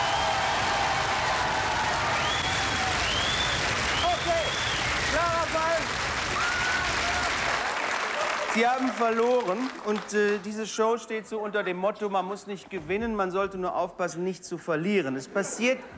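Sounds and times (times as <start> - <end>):
audience applause: 0.0 - 10.6
speech: 8.6 - 15.9.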